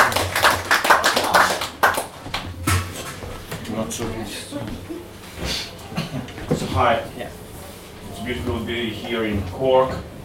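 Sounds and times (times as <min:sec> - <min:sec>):
audience applause: 0:00.0 - 0:02.5
speech: 0:06.8 - 0:07.4, 0:08.3 - 0:10.1.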